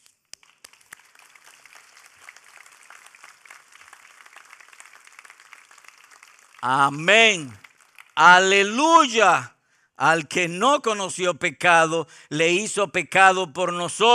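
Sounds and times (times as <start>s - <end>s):
audience applause: 0.3s - 8.6s
speech: 6.6s - 7.6s, 8.2s - 14.1s.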